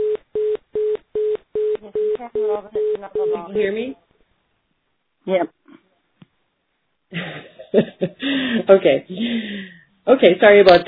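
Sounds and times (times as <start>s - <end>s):
beeping on a call line: 0.0s - 3.6s
speech: 2.6s - 4.0s, 5.2s - 5.6s, 7.2s - 10.8s
laughter: 7.1s - 9.4s.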